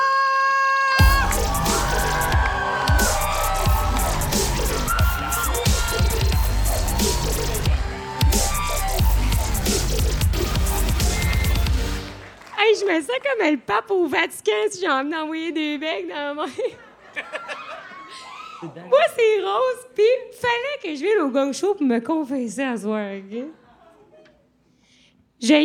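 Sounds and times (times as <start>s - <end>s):
audience applause: 1.0s - 13.1s
speech: 13.0s - 17.6s, 18.6s - 23.6s, 25.4s - 25.6s.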